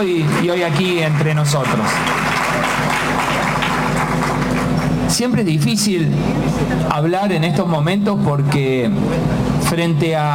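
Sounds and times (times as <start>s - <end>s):
crowd applause: 0.0s - 5.1s
speech: 0.0s - 10.3s.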